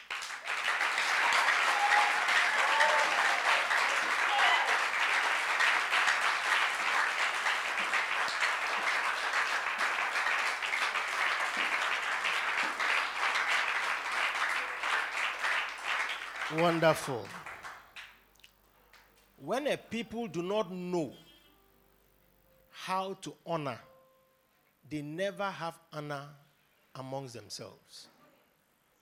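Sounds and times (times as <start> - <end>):
congregation clapping at a special church service: 0.0 - 18.2
speech: 16.6 - 17.4, 19.4 - 21.2, 22.9 - 23.9, 24.9 - 26.4, 27.0 - 28.1.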